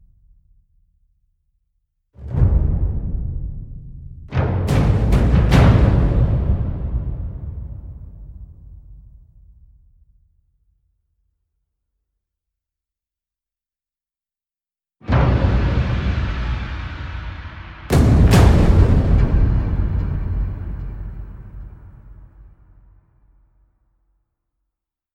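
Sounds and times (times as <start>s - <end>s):
percussion: 2.2s - 10.2s, 15.0s - 23.5s.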